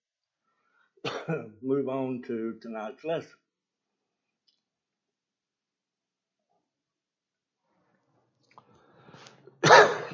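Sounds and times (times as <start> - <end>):
person coughing into the microphone: 1.0 - 1.6, 9.6 - 10.1
speech: 1.0 - 3.4.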